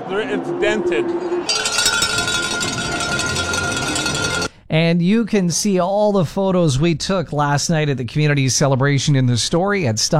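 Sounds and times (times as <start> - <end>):
speech: 0.1 - 1.8, 4.7 - 10.1
celebration bells ringing loudly: 1.5 - 4.5.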